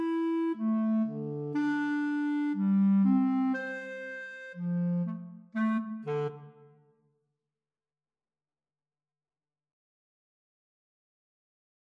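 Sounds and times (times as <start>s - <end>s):
oboe in a clarinet and oboe duet: 0.0s - 6.7s
clarinet in a clarinet and oboe duet: 0.0s - 6.9s.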